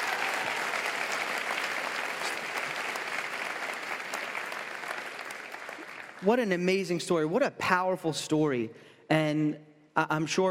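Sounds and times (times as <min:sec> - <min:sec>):
audience applause: 0:00.0 - 0:06.4
speech: 0:06.2 - 0:10.4.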